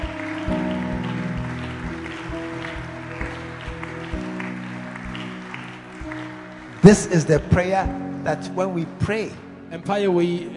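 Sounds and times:
crowd clapping: 0:00.0 - 0:08.0
speech: 0:06.8 - 0:10.5.

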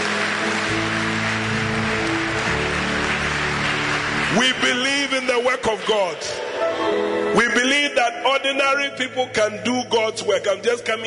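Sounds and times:
audience clapping: 0:00.0 - 0:06.8
speech: 0:04.4 - 0:11.0.

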